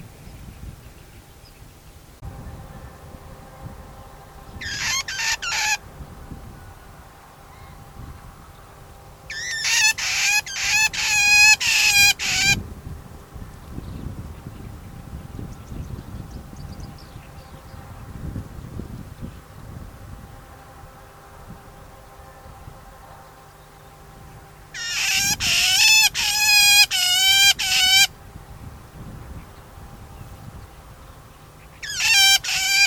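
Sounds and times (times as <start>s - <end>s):
faint low hum: 0.0s - 32.8s
shrike harsh calls: 2.6s - 12.6s, 20.4s - 28.7s, 30.8s - 32.8s.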